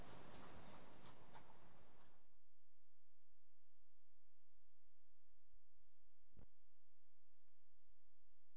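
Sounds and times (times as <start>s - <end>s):
horse hoofbeats: 0.0s - 2.4s.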